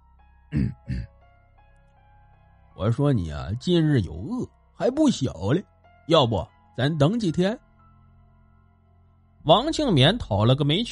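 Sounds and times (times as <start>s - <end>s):
speech: 0.5s - 1.1s, 2.8s - 7.6s, 9.4s - 10.9s
throat-clearing coughs: 0.5s - 1.1s.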